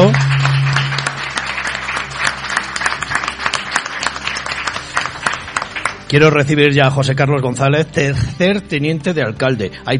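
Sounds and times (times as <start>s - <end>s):
audience applause: 0.0s - 6.1s
speech: 6.1s - 9.9s.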